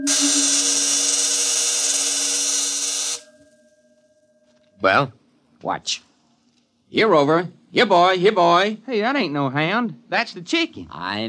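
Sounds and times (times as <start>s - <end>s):
speech: 0.0s - 0.4s, 4.8s - 6.1s, 6.9s - 11.2s
electric field vibrating and discharging: 0.0s - 3.4s.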